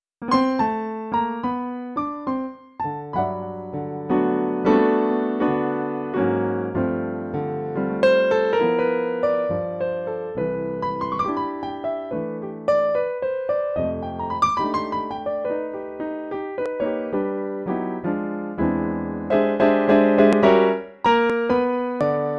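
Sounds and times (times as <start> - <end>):
Baldwin grand piano: 0.2 - 22.3.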